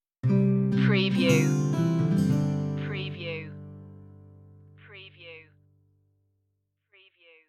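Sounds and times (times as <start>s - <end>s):
Christmas spirit music stinger: 0.3s - 4.8s.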